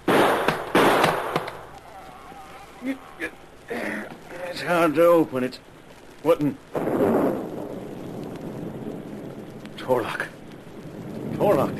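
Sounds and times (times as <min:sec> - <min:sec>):
gunshots fired to blow the lock off a chest: 0:00.0 - 0:01.8
speech: 0:02.8 - 0:03.4, 0:04.6 - 0:07.2, 0:09.9 - 0:10.3, 0:11.4 - 0:11.7.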